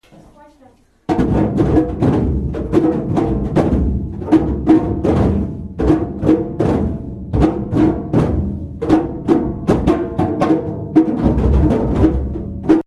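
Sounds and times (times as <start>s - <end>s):
drum: 1.1s - 12.8s.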